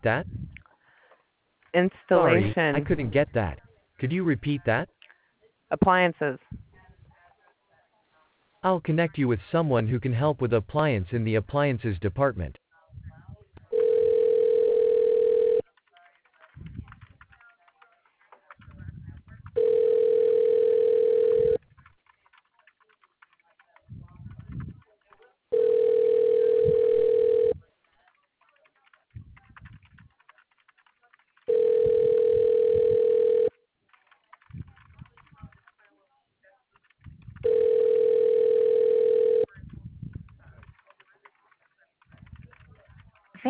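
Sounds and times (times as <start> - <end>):
speech: 0.0 - 0.4, 1.7 - 5.0, 5.7 - 6.6, 8.6 - 12.6
telephone ringback tone during call transfer: 13.7 - 15.6, 19.6 - 21.6, 25.5 - 27.6, 31.5 - 33.5, 37.4 - 39.5.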